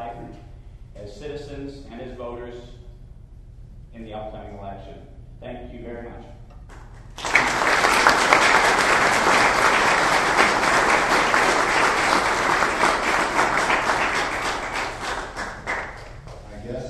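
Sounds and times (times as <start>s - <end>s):
speech: 1.0s - 2.8s, 3.9s - 6.4s
audience clapping: 6.7s - 16.6s.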